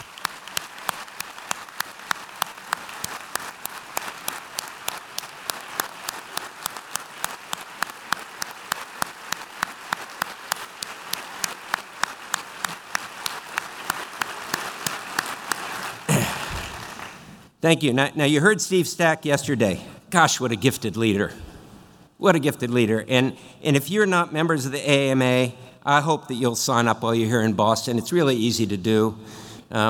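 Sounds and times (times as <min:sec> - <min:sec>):
rousing audience applause: 0:05.2 - 0:16.3
speech: 0:17.6 - 0:21.4, 0:22.2 - 0:29.8.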